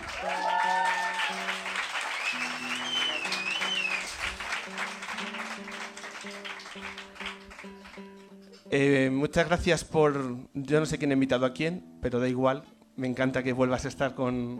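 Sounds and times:
audience applause: 0.0s - 8.2s
speech: 8.7s - 14.5s.

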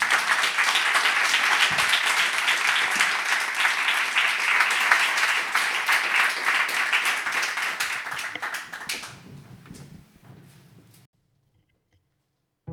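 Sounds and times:
applause: 0.0s - 9.5s.

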